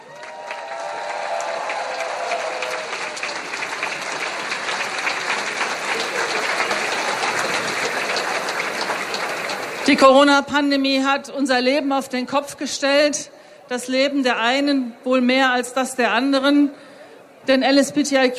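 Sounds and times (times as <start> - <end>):
audience applause: 0.0 - 10.0
speech: 9.9 - 16.8, 17.5 - 18.3.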